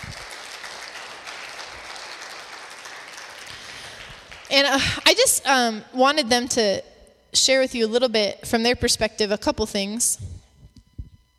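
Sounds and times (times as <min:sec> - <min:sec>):
audience round of applause: 0:00.0 - 0:05.0
speech: 0:04.5 - 0:10.4.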